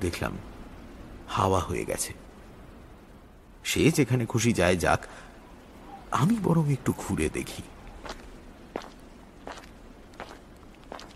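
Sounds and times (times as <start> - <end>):
speech: 0.0 - 0.5, 1.3 - 2.2, 3.6 - 5.3, 6.1 - 7.8
quiet hiss: 0.0 - 11.1
footsteps walking along a narrow road toward a valley: 7.9 - 11.1.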